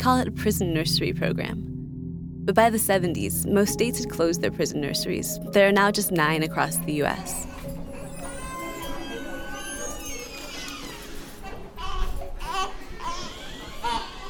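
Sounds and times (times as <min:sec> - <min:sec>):
speech: 0:00.0 - 0:01.7, 0:02.4 - 0:07.6
babies babbling in the prison nursery at Bedford Hills Correctional Facility: 0:07.4 - 0:14.2.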